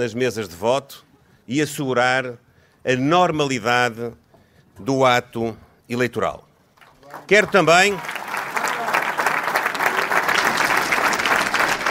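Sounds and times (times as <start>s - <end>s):
speech: 0.0s - 4.2s, 4.8s - 6.5s, 7.2s - 8.1s
audience applause: 6.9s - 11.8s.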